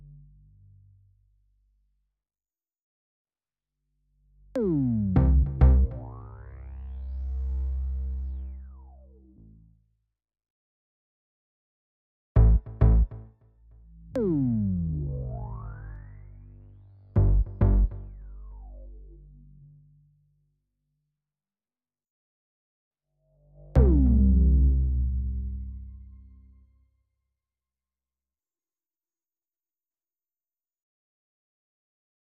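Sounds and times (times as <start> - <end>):
bass: 0.0 - 2.0, 4.0 - 10.0, 12.4 - 20.8, 23.2 - 27.0.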